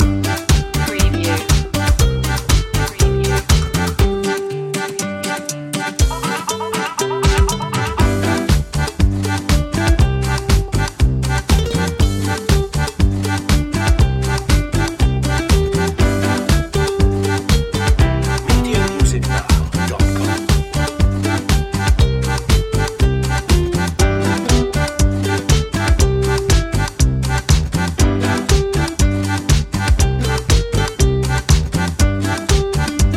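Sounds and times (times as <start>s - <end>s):
instrumental music loop without vocals: 0.0s - 33.1s.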